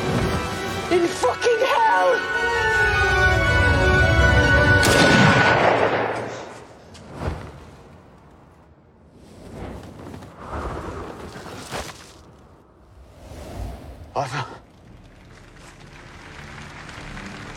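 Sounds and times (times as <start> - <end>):
music: 0.0 - 5.5, 14.9 - 17.5
speech: 0.9 - 2.5
gunshot in a crime drama scene: 4.8 - 6.7.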